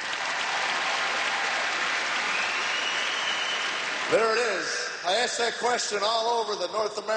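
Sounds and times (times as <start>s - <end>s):
weak half-hearted applause: 0.0s - 4.8s
speech: 4.1s - 7.1s.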